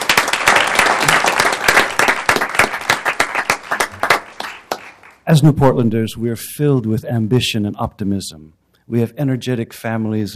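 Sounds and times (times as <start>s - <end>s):
audience applause: 0.0s - 5.2s
speech: 5.3s - 10.3s.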